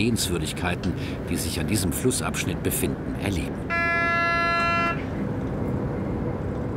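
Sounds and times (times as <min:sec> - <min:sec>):
speech: 0:00.0 - 0:03.8
moving train rumbling on the Middle Rhine line: 0:00.0 - 0:06.7
train horn on the left-bank Middle Rhine line between Bingen and Koblenz: 0:03.7 - 0:05.1.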